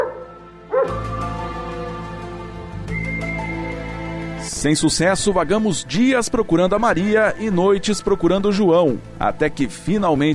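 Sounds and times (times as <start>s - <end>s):
mongrel dog barking: 0.0s - 1.0s
music: 0.0s - 10.3s
speech: 4.6s - 10.3s.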